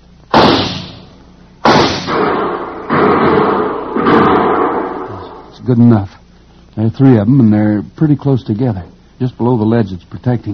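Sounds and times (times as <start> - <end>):
gunshots fired by two men during a standoff: 0.3 - 5.5
speech: 5.7 - 6.2, 6.8 - 10.5.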